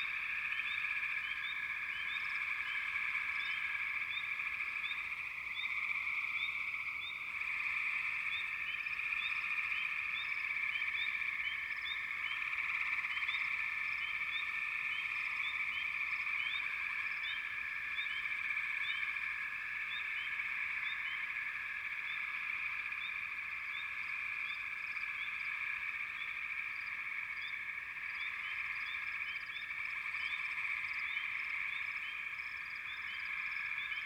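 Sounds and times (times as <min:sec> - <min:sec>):
frog chorus trilling: 0:00.0 - 0:34.0.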